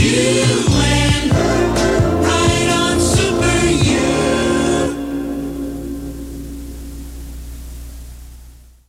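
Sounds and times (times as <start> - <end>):
jingle: 0.1 - 6.7.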